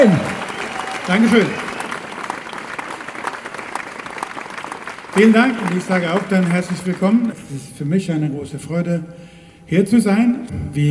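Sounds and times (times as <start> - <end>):
speech: 0.0 - 0.4, 1.0 - 1.6, 5.2 - 10.8
audience applause welcoming a musician onto a stage: 0.0 - 7.4.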